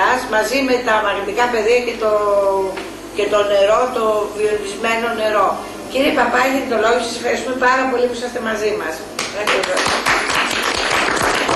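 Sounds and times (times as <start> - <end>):
speech: 0.3 - 10.2
sharp individual claps: 9.2 - 11.5
audience applause at an event in the Vrilissia cultural centre: 9.5 - 11.5.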